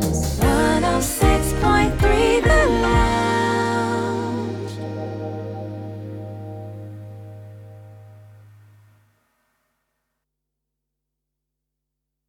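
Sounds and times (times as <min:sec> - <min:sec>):
slogan jingle: 0:00.0 - 0:08.3.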